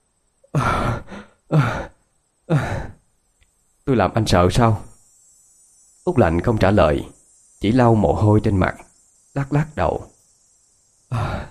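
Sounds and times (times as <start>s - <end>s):
heavy exhale and panting breaths: 0.5s - 3.0s, 11.1s - 11.4s
speech: 1.5s - 1.8s, 3.9s - 4.9s, 6.0s - 10.1s, 11.1s - 11.4s.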